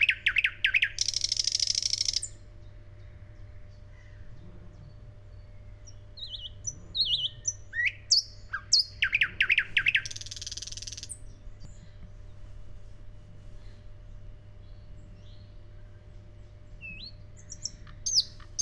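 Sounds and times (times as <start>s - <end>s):
thrush nightingale Luscinia luscinia singing: 0.0s - 2.8s, 3.4s - 11.8s, 16.6s - 18.6s.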